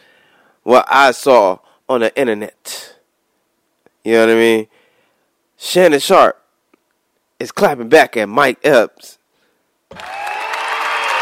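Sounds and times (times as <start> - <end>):
speech: 0.6 - 2.8, 4.0 - 4.8, 5.6 - 6.4, 7.4 - 9.2, 9.9 - 10.2
soundboard cheering applause effect: 9.9 - 11.2.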